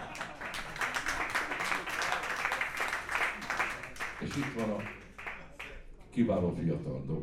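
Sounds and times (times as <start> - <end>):
faint audience clapping for musicians at a concert: 0.0 - 6.0
speech: 4.3 - 5.0, 6.1 - 7.2.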